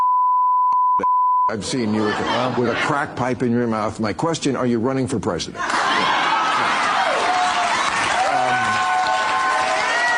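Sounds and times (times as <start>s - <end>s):
speech: 1.0s - 6.2s
laughter: 1.7s - 3.4s
crowd cheering and applauding: 5.7s - 10.1s.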